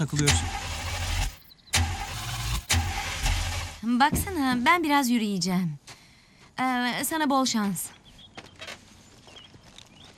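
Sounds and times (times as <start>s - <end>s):
speech: 0.0s - 0.6s, 3.8s - 5.8s, 6.6s - 8.0s
car engine being started: 0.0s - 3.9s.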